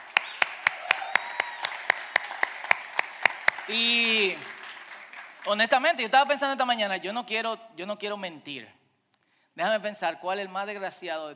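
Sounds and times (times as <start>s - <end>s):
audience applause: 0.0s - 5.8s
speech: 3.7s - 4.5s, 5.5s - 8.8s, 9.6s - 11.3s.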